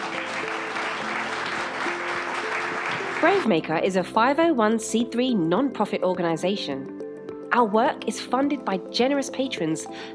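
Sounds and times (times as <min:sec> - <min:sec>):
audience applause for panelists: 0:00.0 - 0:03.5
speech: 0:03.2 - 0:10.1.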